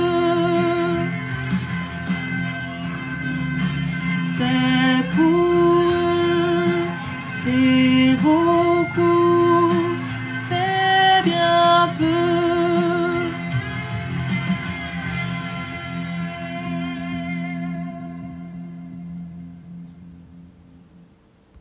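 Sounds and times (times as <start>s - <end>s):
voice: 0.0s - 1.1s, 4.2s - 13.3s
Ethiopian instrumental music: 0.0s - 21.2s.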